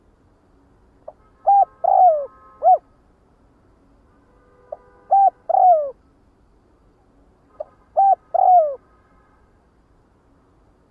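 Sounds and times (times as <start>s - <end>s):
spotted dove cooing: 1.4s - 2.8s, 5.1s - 6.0s, 8.0s - 8.8s.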